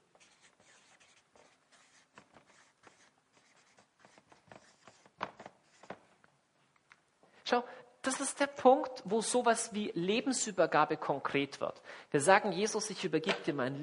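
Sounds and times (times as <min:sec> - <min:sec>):
pen strokes scratching on paper: 0:00.1 - 0:06.0
speech: 0:07.5 - 0:13.8.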